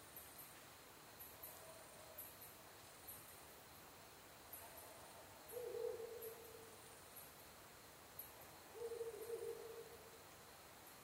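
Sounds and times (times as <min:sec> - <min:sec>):
background hiss: 0:00.0 - 0:11.0
Ural Owl hoots: 0:05.5 - 0:06.7, 0:08.7 - 0:10.0.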